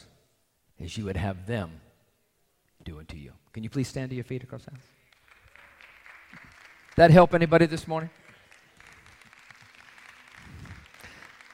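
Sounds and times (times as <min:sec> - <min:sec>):
speech: 0:00.8 - 0:01.9, 0:02.8 - 0:05.0, 0:07.0 - 0:08.2
crowd applauding: 0:05.1 - 0:11.5.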